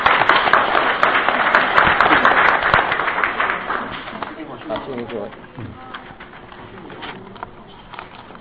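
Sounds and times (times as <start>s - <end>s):
audience applause: 0.0s - 5.0s.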